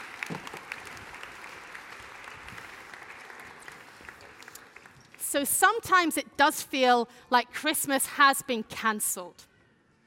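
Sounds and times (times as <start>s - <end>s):
crowd clapping: 0.0s - 5.5s
speech: 5.3s - 9.5s.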